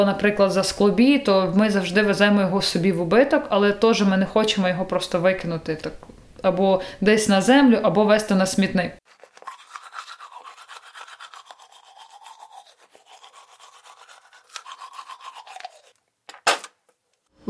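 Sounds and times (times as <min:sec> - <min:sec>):
speech: 0:00.0 - 0:09.2
toothbrush scrubbing teeth: 0:09.0 - 0:16.0.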